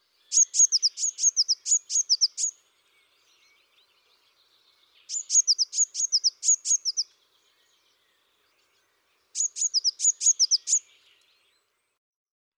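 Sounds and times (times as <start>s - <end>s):
Eurasian blue tit song: 0.0s - 12.0s.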